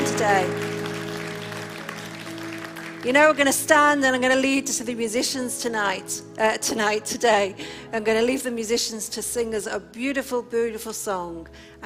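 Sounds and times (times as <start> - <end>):
audience applause: 0.0 - 3.4
speech: 0.2 - 0.7, 3.0 - 11.8.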